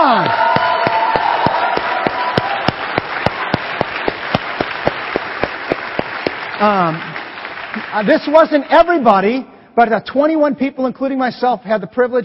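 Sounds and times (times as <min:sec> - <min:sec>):
audience applause: 0:00.2 - 0:08.4
speech: 0:06.6 - 0:07.1, 0:07.7 - 0:12.2.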